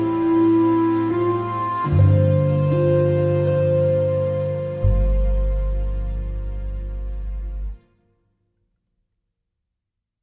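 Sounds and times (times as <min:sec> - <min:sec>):
jazz music: 0:00.0 - 0:08.0.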